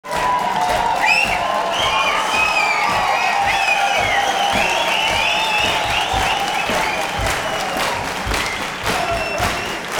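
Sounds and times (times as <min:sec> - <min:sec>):
applause: 0:00.0 - 0:09.9.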